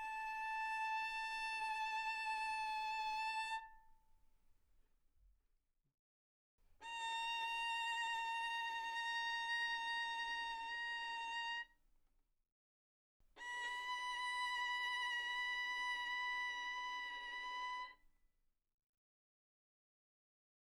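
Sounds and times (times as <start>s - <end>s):
violin bowed mezzo forte on the A string: 0.0s - 3.9s, 6.8s - 11.7s, 13.4s - 18.0s.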